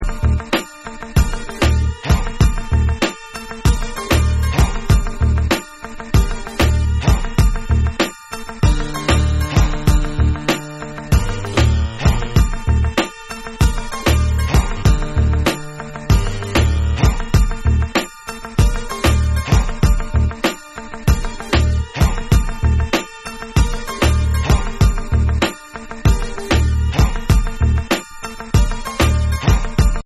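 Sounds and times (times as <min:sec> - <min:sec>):
instrumental music: 0:00.0 - 0:30.0.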